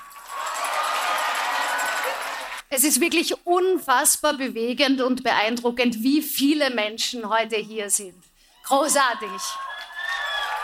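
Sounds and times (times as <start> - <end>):
crowd applause: 0.0 - 2.6, 9.7 - 10.6
crowd cheering: 0.0 - 2.7, 9.1 - 10.6
speech: 2.7 - 9.6.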